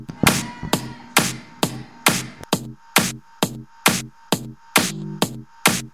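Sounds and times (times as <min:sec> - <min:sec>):
electro music: 0:00.1 - 0:02.5, 0:04.8 - 0:05.8.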